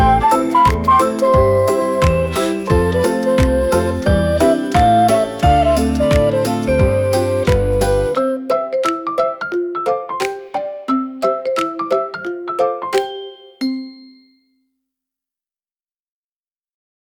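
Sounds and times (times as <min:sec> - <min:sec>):
afterschool whistle: 0:00.0 - 0:08.4
background music: 0:00.0 - 0:14.1.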